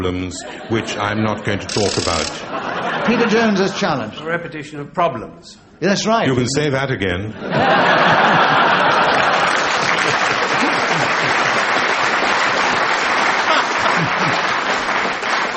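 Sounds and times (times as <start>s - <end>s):
speech: 0.0s - 8.4s
laughter: 0.3s - 4.2s, 6.6s - 15.2s
studio audience clapping: 8.4s - 15.5s.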